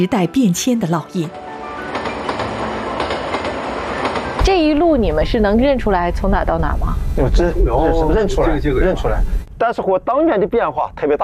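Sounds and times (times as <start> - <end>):
speech: 0.0 - 1.5, 4.5 - 11.2
train pulling out of Tongliao station: 1.2 - 9.5
train wheels clickety-clack over rail joints: 1.7 - 5.4.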